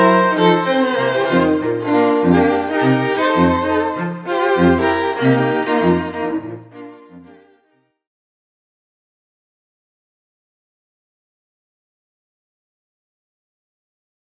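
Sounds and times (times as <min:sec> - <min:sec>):
string quartet: 0:00.0 - 0:07.9.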